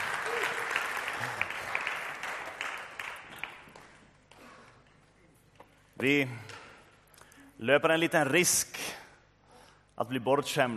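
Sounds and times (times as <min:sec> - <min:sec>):
audience applause: 0:00.0 - 0:04.0
speech: 0:06.0 - 0:06.5, 0:07.6 - 0:09.0, 0:10.0 - 0:10.7.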